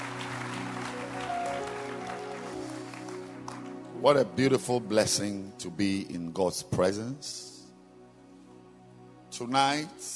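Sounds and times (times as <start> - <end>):
audience hand clapping: 0.0 - 4.2
speech: 4.0 - 7.5, 9.4 - 10.1.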